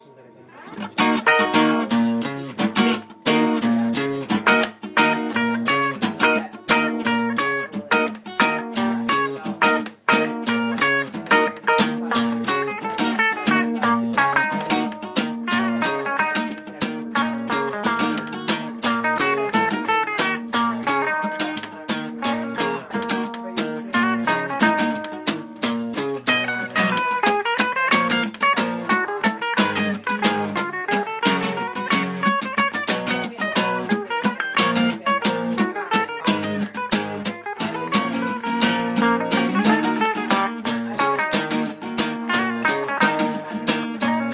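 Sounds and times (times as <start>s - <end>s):
acoustic electric guitar: 0.5s - 44.3s.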